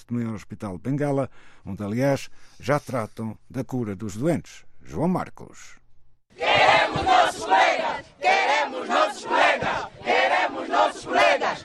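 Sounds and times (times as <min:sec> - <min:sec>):
speech: 0:00.0 - 0:11.6
protesting students shouting slogans: 0:06.4 - 0:11.6.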